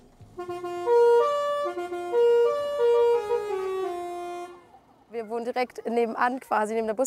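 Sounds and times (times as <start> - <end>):
mobile library bus horn playing a tune: 0.3 - 4.8
speech: 0.4 - 0.9, 5.3 - 7.0.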